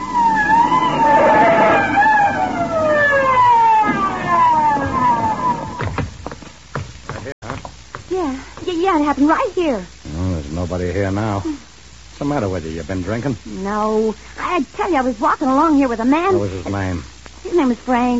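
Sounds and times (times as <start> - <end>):
police siren wailing: 0.0 - 6.0
clattering thumps: 4.8 - 8.7
speech: 9.1 - 10.0, 10.6 - 11.6, 12.2 - 18.1.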